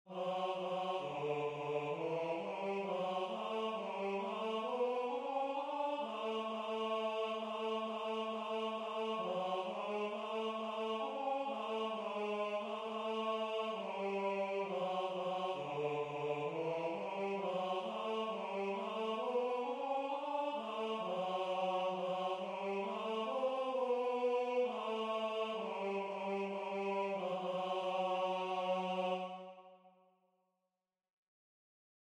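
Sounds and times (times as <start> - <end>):
tenor singing: 0.1 - 29.5.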